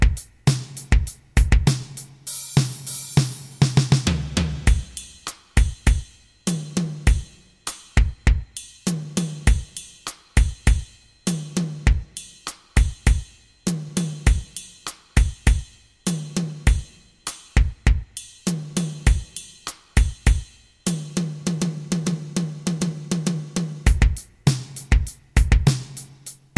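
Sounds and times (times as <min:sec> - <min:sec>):
drum kit playing an etude: 0:00.0 - 0:26.5.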